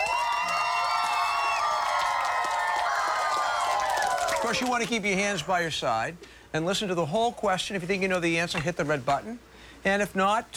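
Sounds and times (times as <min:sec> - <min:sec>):
audience applause: 0:00.0 - 0:05.6
speech: 0:04.5 - 0:10.5.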